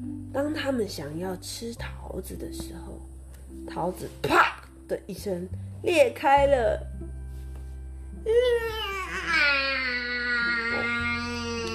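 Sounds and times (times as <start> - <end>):
speech: 0.4 - 3.0, 3.7 - 6.9, 8.2 - 8.9
newborn baby crying and babbling: 8.6 - 11.7.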